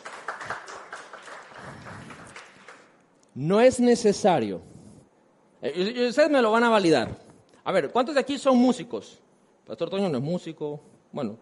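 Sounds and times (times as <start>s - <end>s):
audience applause: 0.0s - 3.0s
speech: 3.4s - 4.7s, 5.6s - 11.4s.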